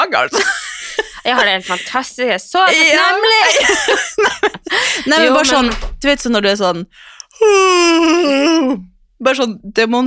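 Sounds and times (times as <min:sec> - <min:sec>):
speech: 0:00.1 - 0:10.0
laughter: 0:00.3 - 0:02.0, 0:02.7 - 0:05.6
person yawning demonstratively: 0:07.3 - 0:08.9.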